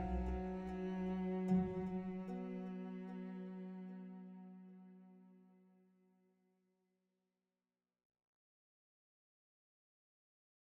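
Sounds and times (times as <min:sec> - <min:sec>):
cello: 0:00.0 - 0:06.0.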